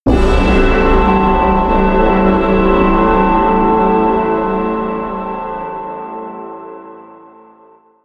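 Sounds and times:
eastern music hit: 0:00.1 - 0:06.9.

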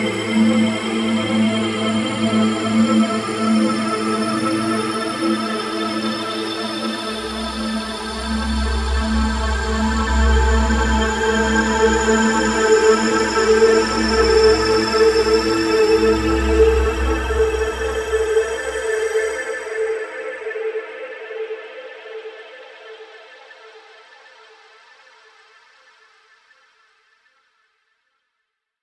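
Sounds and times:
dark phaser synth: 0:00.0 - 0:19.5.

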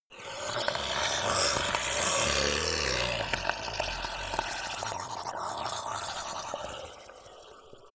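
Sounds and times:
male zombie slimy grunt and choke: 0:00.1 - 0:07.9.

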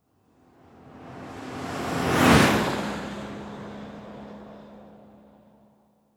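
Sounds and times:
Mercedes car passing: 0:00.8 - 0:04.4.

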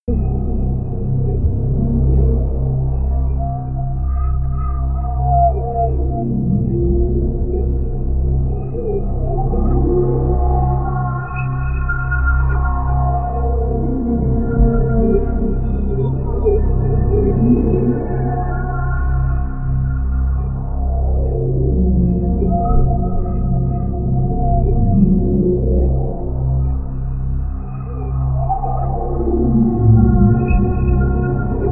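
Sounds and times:
drone: 0:00.1 - 0:31.7.

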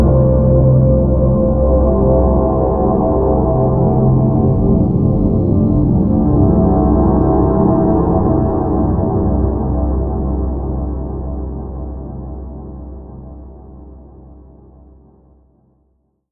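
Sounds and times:
deep drone wash: 0:00.0 - 0:12.5.

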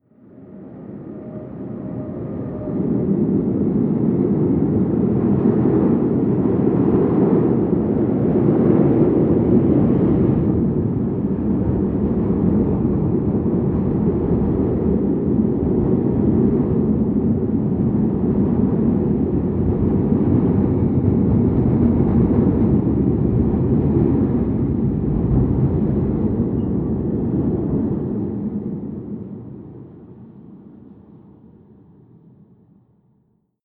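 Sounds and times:
distant freight train driving by: 0:00.2 - 0:29.1.

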